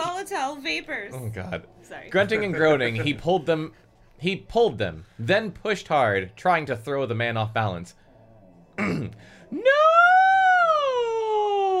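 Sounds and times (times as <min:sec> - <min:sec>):
speech: 0:00.3 - 0:08.0, 0:08.8 - 0:10.1
shrill scream: 0:09.5 - 0:11.7.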